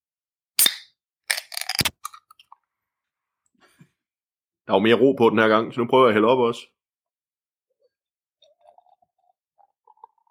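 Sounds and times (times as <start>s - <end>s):
beer bottle or can opening with pop and hiss: 0.6s - 2.0s
speech: 4.7s - 6.8s.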